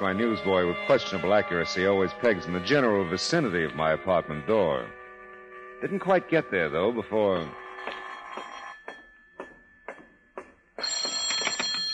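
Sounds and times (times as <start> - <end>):
speech: 0.0 - 5.0, 5.8 - 8.0
telephone bell ringing: 7.6 - 9.8, 10.8 - 11.9.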